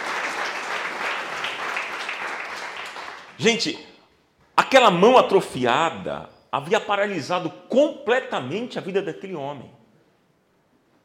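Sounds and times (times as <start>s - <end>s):
audience applauding loudly: 0.0s - 3.5s
speech: 3.4s - 3.9s, 4.6s - 9.8s.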